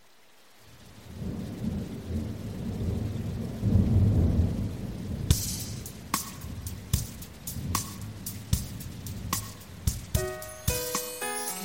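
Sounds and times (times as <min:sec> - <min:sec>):
rain: 0:00.0 - 0:11.6
thunder: 0:01.1 - 0:06.7.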